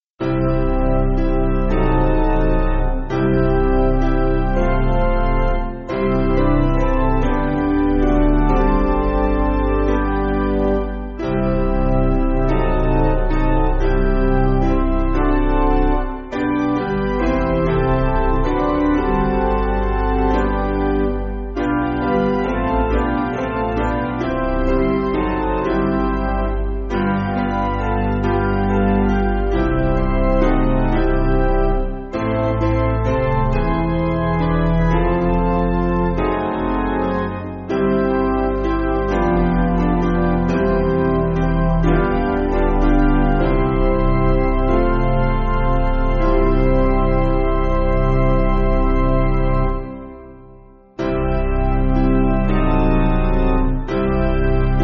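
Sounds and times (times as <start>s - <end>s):
hymn on piano: 0.0s - 54.8s.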